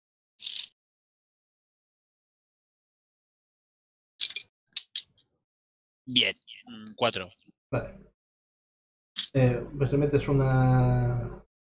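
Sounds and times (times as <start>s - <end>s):
four-sided and eight-sided dice rattling across a table: 0.4s - 0.8s
speech: 6.1s - 8.1s, 9.3s - 11.4s.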